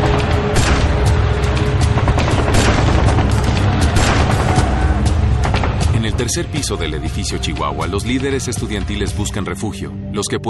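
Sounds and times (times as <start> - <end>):
gunfire, soldiers returning fire: 0.0 - 5.9
speech: 6.3 - 10.4.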